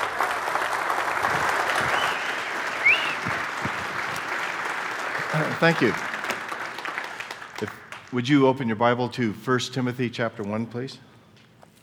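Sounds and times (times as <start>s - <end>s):
audience applause welcoming a pastor at a Calvary Chapel church session: 0.0s - 8.2s
speech: 5.3s - 6.1s, 7.6s - 11.1s.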